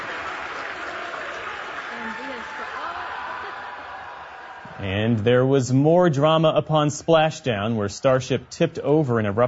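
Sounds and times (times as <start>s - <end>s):
SpaceX mission control staff cheering as Starship lands: 0.0s - 5.2s
SpaceX mission control staff clapping as Starship lands: 0.0s - 5.3s
speech: 4.8s - 9.4s.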